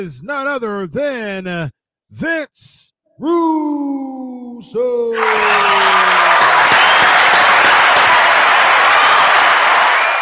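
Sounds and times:
speech: 0.0 - 6.4
applause sound effect: 5.2 - 10.1.

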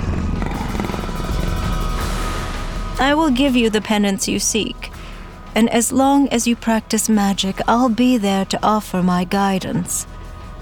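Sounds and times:
panther purring: 0.0 - 3.5
speech: 3.0 - 5.0, 5.6 - 10.1.

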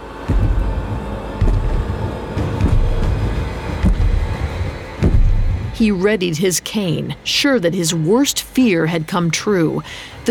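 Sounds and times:
heavy booming thumps of giant footsteps: 0.0 - 6.0
constant deep rumble: 0.0 - 6.6
speech: 5.8 - 10.3.

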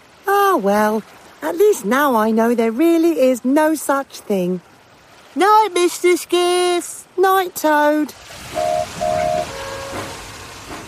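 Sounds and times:
speech: 0.5 - 4.7, 5.4 - 9.0
steam engine rumbling hiss: 7.8 - 10.8
steam engine whistle: 8.5 - 10.7.

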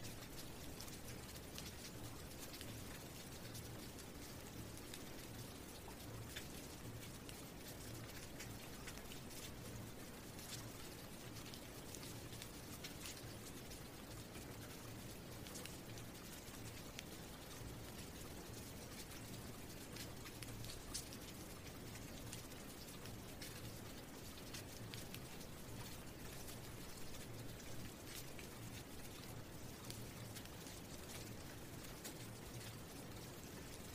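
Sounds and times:
rain falling: 0.0 - 33.9.

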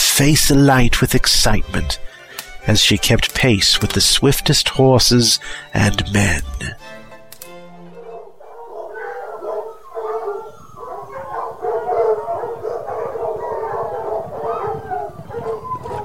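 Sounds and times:
speech: 0.2 - 7.0
hunting hound pack baying and howling: 8.0 - 16.0.

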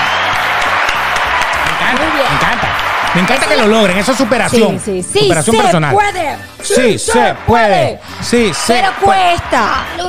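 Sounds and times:
audience applause: 0.0 - 4.6, 7.2 - 10.0
speech: 3.1 - 10.0.

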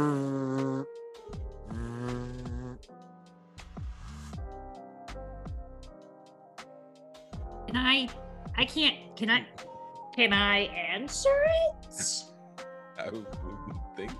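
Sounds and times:
voice imitating a phone vibrating: 0.0 - 0.8, 1.7 - 2.8
speech: 7.7 - 12.3, 13.0 - 13.4, 14.0 - 14.1.

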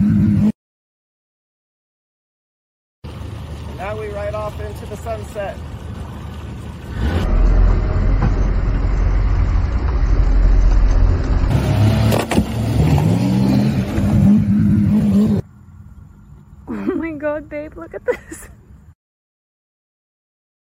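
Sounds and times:
boat engine running: 3.0 - 16.2
speech: 3.8 - 5.8, 17.2 - 18.6.

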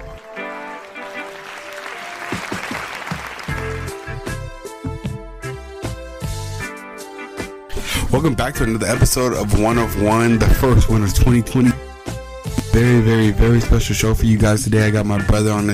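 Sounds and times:
round of applause: 0.0 - 4.4
speech: 8.1 - 11.7, 12.8 - 15.7.

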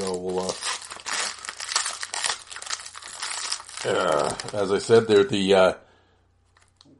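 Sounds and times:
wrapper of a 1991-92 Pro Set hockey card pack crinkling: 0.0 - 5.4
speech: 3.8 - 5.8.

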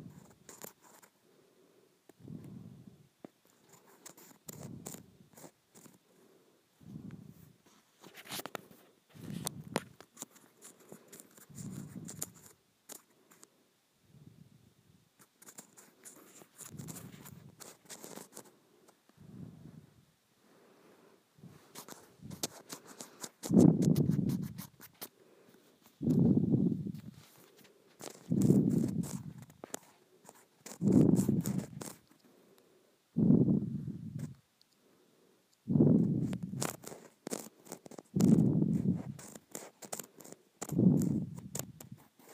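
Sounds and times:
scratching on a textured plastic surface: 0.0 - 1.1, 3.4 - 6.0, 7.6 - 13.5, 15.2 - 19.4, 21.4 - 32.3, 35.7 - 42.3
crisp ticks: 0.2 - 1.1, 3.2 - 6.0, 9.3 - 13.5, 15.2 - 19.1, 21.7 - 25.1, 26.9 - 32.3, 36.2 - 42.3.

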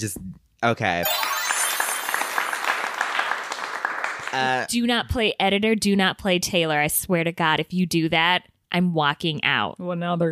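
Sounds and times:
speech: 0.0 - 1.3, 4.3 - 10.2
applause sound effect: 1.0 - 4.6.

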